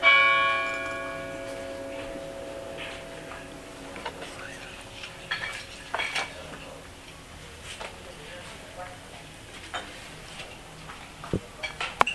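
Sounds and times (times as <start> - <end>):
bells ringing in Prague: 0.0 - 6.8.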